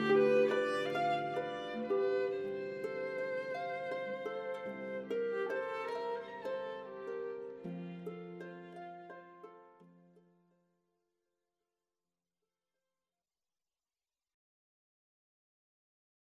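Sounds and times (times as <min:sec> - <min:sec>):
violin: 0:00.0 - 0:10.2
harp: 0:00.0 - 0:10.3.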